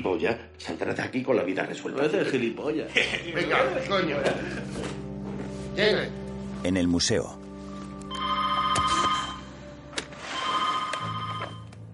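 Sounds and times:
speech: 0:00.0 - 0:05.1, 0:05.8 - 0:07.4
laughter: 0:02.9 - 0:05.0
telephone ringing: 0:08.1 - 0:09.6, 0:10.2 - 0:11.8.

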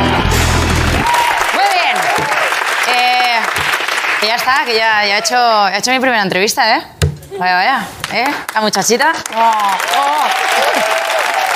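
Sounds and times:
audience applause: 0:00.0 - 0:04.9, 0:09.2 - 0:11.5
speech: 0:04.2 - 0:11.1.

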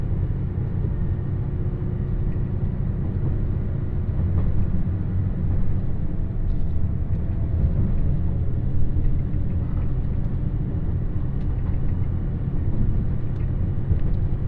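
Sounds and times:
Nanpu limited express train rumble on the Dosan Line: 0:00.0 - 0:14.4.

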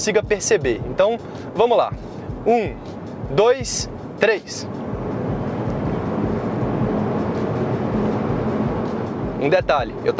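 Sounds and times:
speech: 0:00.0 - 0:04.8, 0:09.4 - 0:10.1
car accelerating hard with synthetic engine sound: 0:04.7 - 0:09.6.

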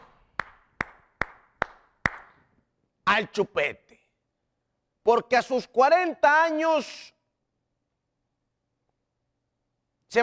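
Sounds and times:
hand clapping: 0:00.0 - 0:02.5
speech: 0:03.1 - 0:03.8, 0:05.0 - 0:07.2.

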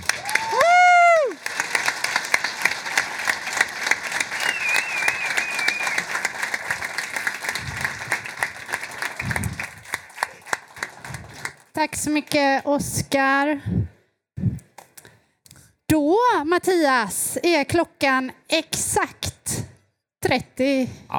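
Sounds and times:
crowd noise: 0:00.0 - 0:11.6
audience applause congratulating a scholarship winner: 0:00.0 - 0:11.7
speech: 0:11.9 - 0:13.8, 0:16.0 - 0:19.2, 0:20.3 - 0:21.1.

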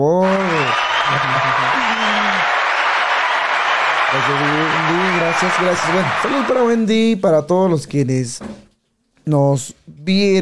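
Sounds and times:
laughter: 0:00.2 - 0:06.6
crowd applause: 0:00.2 - 0:06.8
speech: 0:04.1 - 0:08.7, 0:09.3 - 0:10.4.

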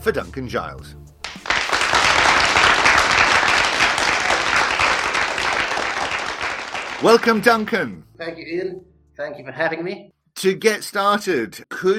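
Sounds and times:
speech: 0:00.0 - 0:01.2, 0:07.0 - 0:11.9
crowd applauding: 0:01.2 - 0:07.7.

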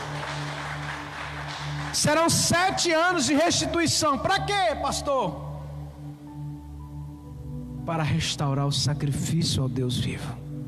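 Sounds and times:
audience applauding: 0:00.0 - 0:03.2
speech: 0:02.0 - 0:05.5, 0:07.9 - 0:10.4.

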